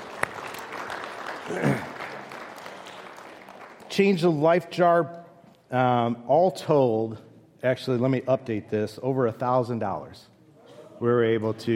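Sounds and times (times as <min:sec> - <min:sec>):
audience applause: 0:00.0 - 0:03.9
speech: 0:01.5 - 0:01.9, 0:04.0 - 0:10.3, 0:11.0 - 0:11.7.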